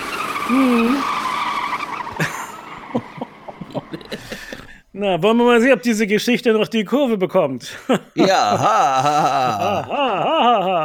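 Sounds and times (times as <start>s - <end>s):
car accelerating at full throttle: 0.0s - 3.8s
speech: 0.5s - 1.1s, 5.0s - 10.8s
laughter: 2.1s - 4.8s, 7.7s - 10.8s.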